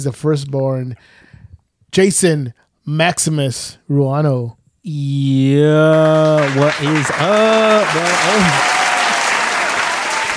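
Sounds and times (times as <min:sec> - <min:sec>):
speech: 0:00.0 - 0:01.3, 0:01.9 - 0:08.7
loud clapping: 0:05.8 - 0:10.3.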